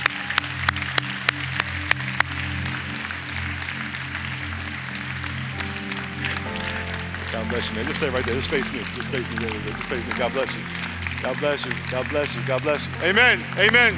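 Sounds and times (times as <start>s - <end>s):
audience applauding and cheering: 0.0s - 13.9s
sustained organ-like music: 0.3s - 13.9s
speech: 7.5s - 13.9s.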